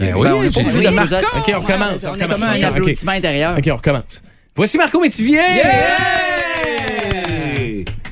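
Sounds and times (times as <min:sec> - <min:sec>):
speech: 0:00.0 - 0:08.0
studio applause: 0:05.6 - 0:08.0.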